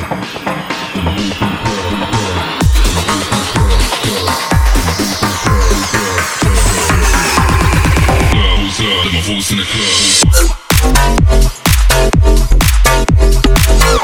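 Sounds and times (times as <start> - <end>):
house music: 0.0 - 14.0.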